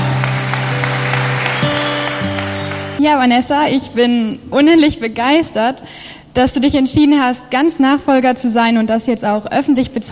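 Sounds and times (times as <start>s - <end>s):
audience applause: 0.0s - 3.0s
speech: 3.0s - 10.1s.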